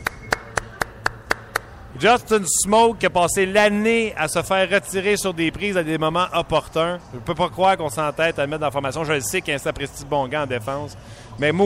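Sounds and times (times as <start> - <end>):
hands clapping: 0.0 - 1.7
speech: 2.0 - 11.6.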